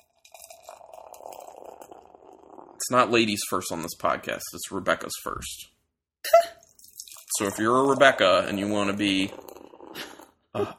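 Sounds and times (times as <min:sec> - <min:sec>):
beer pouring into a glass: 0:00.0 - 0:04.0, 0:06.6 - 0:10.4
speech: 0:02.9 - 0:05.7, 0:07.4 - 0:09.5, 0:10.6 - 0:10.7.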